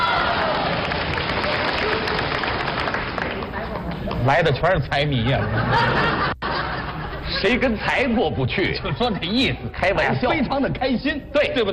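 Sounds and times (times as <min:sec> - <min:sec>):
audience applause: 0:00.0 - 0:04.4
speech: 0:04.2 - 0:06.3, 0:07.4 - 0:11.7
laughter: 0:05.0 - 0:11.0.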